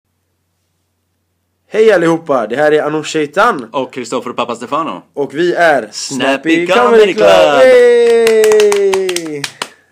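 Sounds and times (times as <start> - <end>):
speech: 1.7 - 9.6
fake applause hand clapping: 7.1 - 9.9.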